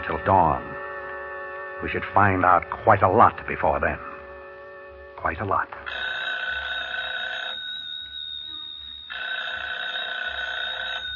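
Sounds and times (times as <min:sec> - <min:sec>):
speech: 0:00.1 - 0:00.8, 0:01.8 - 0:04.1, 0:05.2 - 0:06.0
telephone ringing: 0:05.8 - 0:11.1.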